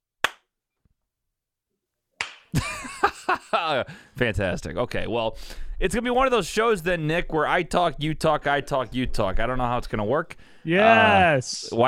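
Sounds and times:
hand clap for delay test: 0.2 - 0.5, 2.2 - 2.7
laughter: 2.6 - 3.9
speech: 3.5 - 11.8.

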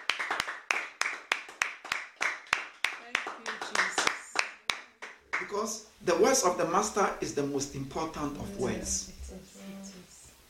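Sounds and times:
audience clapping: 0.0 - 5.7
speech: 5.5 - 9.4.

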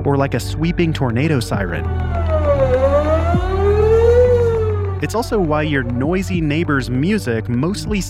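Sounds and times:
speech: 0.1 - 2.2, 5.0 - 8.0
deep low droning foghorn blast: 1.9 - 5.4.

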